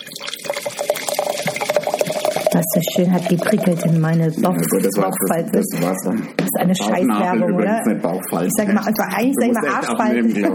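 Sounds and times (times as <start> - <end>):
white wine pouring into a glass: 0.0 - 6.0
speech: 2.5 - 10.5.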